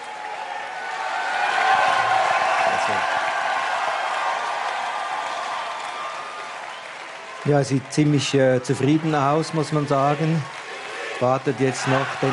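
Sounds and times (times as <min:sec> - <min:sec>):
crowd cheering at political rally: 0:00.0 - 0:12.3
speech: 0:07.4 - 0:10.6, 0:11.2 - 0:12.3.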